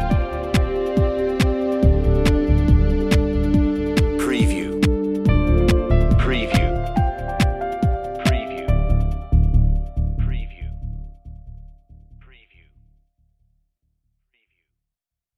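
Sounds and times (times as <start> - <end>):
reflective alternative mix on-hold music: 0.0 - 12.3.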